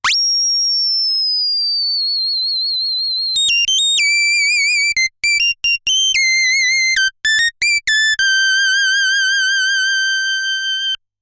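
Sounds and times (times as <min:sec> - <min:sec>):
DSI Mopho synthesizer keyboard solo: 0:03.4 - 0:11.0.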